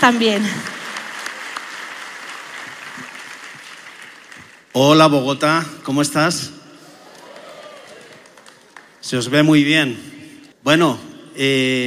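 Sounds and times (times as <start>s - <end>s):
speech: 0.0s - 0.7s, 4.8s - 6.6s, 9.0s - 11.8s
audience applause: 0.0s - 4.7s, 6.9s - 9.0s.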